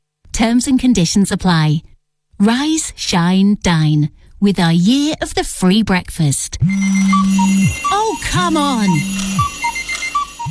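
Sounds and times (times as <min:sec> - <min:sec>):
speech: 0:00.4 - 0:09.5
electronic alarm clock beeping: 0:06.6 - 0:10.4.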